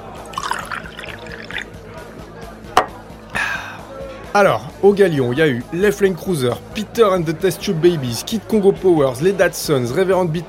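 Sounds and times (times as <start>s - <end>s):
drink being poured into a glass: 0.2s - 1.8s
glass clink: 0.3s - 1.6s
speech: 4.4s - 10.4s.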